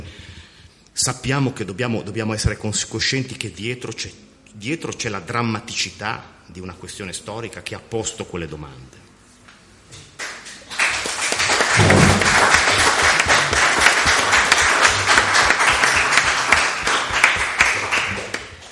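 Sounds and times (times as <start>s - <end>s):
speech: 1.0s - 9.0s
audience applause: 10.2s - 18.7s.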